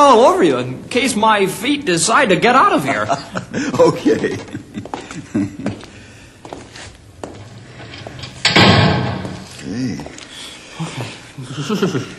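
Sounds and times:
speech: 0.1s - 4.6s, 5.4s - 5.7s, 11.6s - 12.1s
laughter: 2.7s - 6.0s, 11.0s - 12.1s
door rattling as it settles: 7.4s - 9.6s
heavy door slamming shut: 7.8s - 9.6s.

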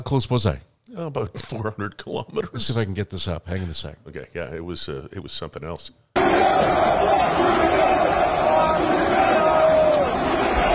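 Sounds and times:
speech: 0.0s - 9.5s
large arena crowd chanting at a UFC fight: 6.2s - 10.7s.

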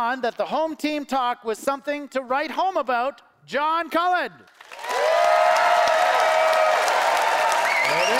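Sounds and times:
speech: 0.0s - 4.6s, 7.9s - 8.1s
audience applause: 4.6s - 8.1s.

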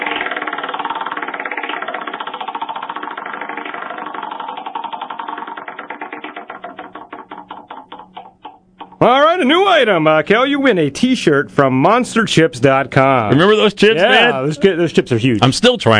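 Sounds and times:
prize wheel spinning: 0.0s - 10.8s
speech: 9.0s - 15.9s.

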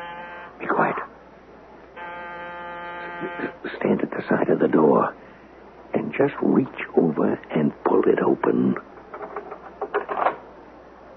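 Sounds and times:
electric doorbell buzzer: 0.0s - 0.6s, 2.0s - 3.6s
speech: 3.2s - 5.3s, 6.1s - 8.9s.

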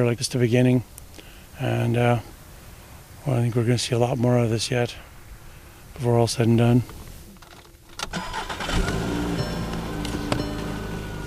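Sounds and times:
speech: 0.0s - 1.0s, 1.6s - 2.3s, 3.2s - 5.1s, 6.0s - 7.0s
Volkswagen Jetta engine starting and driving off: 7.9s - 11.2s.

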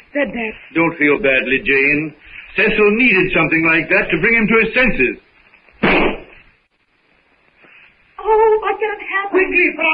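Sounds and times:
speech: 0.1s - 5.2s, 8.9s - 9.9s
rifle shot in a jungle drama: 5.8s - 6.3s.

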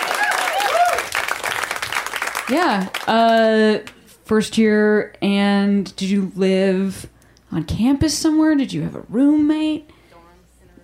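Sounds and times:
audience clapping: 0.0s - 4.0s
speech: 2.5s - 10.0s.

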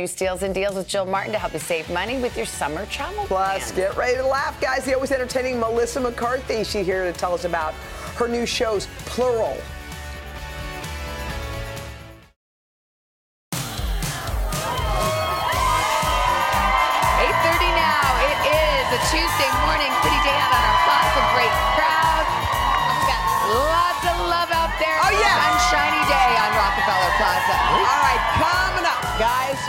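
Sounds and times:
speech: 0.0s - 9.8s
large studio audience cheering and whooping: 14.0s - 29.6s.

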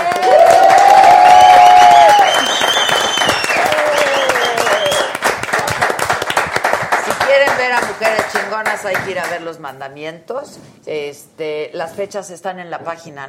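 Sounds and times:
audience applause: 0.0s - 8.5s
speech: 8.8s - 13.2s.

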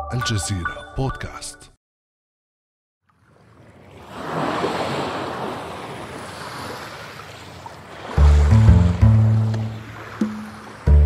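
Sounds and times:
speech: 0.1s - 1.7s
water crashing against remote islands: 3.9s - 10.9s.

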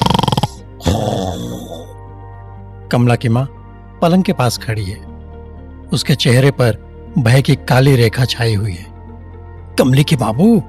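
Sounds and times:
tehsildar sahib snoring in sleep: 0.0s - 2.0s
speech: 2.9s - 5.1s, 5.9s - 8.9s, 9.8s - 10.6s.

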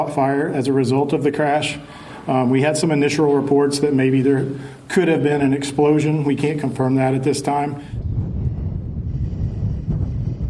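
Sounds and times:
speech: 0.0s - 8.0s
strong wind buffeting the microphone: 7.9s - 10.4s.

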